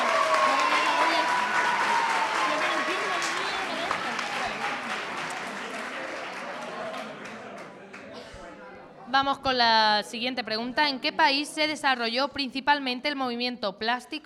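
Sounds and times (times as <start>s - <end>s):
audience applause: 0.0s - 8.1s
speech: 9.2s - 14.2s.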